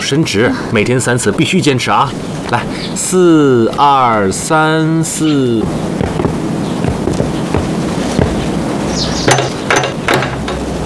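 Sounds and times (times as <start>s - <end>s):
speech: 0.1s - 6.1s
knocking on a door: 6.0s - 8.5s, 9.3s - 10.6s.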